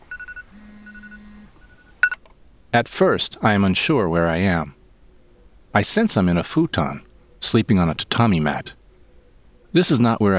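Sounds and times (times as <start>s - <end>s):
iPhone alarm going off: 0.0s - 2.2s
speech: 2.8s - 4.8s, 5.8s - 8.8s, 9.7s - 10.3s.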